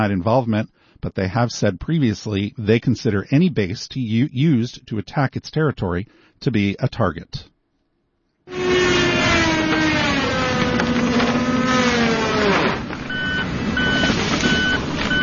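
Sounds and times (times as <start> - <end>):
speech: 0.0 - 7.5, 8.5 - 9.1
chainsaw and truck engine drone at East Potomac golf course: 8.5 - 15.2
truck reversing beeps: 13.1 - 15.2.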